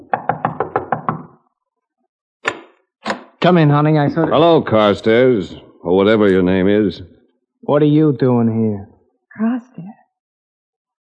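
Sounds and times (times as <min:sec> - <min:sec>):
knocking on a door: 0:00.0 - 0:01.4
speech: 0:03.4 - 0:07.1, 0:07.7 - 0:10.0.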